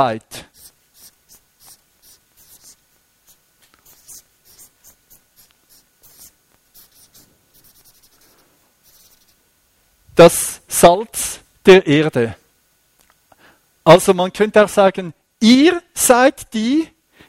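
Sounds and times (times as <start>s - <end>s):
speech: 0.0s - 0.5s, 10.2s - 12.4s, 13.8s - 16.9s
handwriting with scratchy pen strokes: 0.5s - 9.4s.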